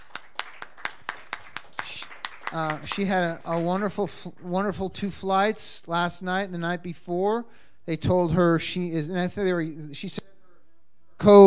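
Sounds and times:
church congregation clapping in unison on a steady beat: 0.0 - 4.5
speech: 2.5 - 10.3, 11.2 - 11.4.

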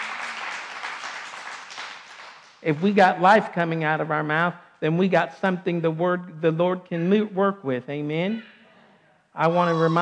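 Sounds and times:
church congregation clapping during a sermon: 0.0 - 3.2
speech: 2.6 - 8.5, 9.4 - 10.0.

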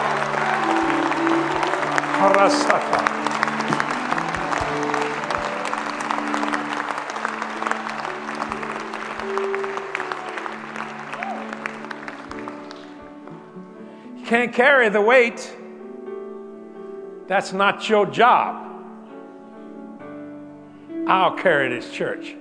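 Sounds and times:
audience clapping hands: 0.0 - 13.3
speech: 2.2 - 3.1, 14.5 - 15.6, 17.3 - 18.7, 21.1 - 22.3.

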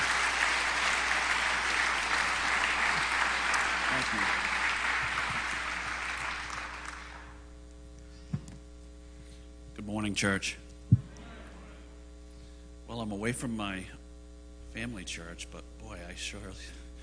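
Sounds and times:
church congregation applauding to welcome Sheriff Troy Morton: 0.0 - 7.4
mains hum: 0.0 - 17.0
speech: 4.0 - 4.5, 10.0 - 10.6, 13.2 - 14.0, 14.8 - 16.8.

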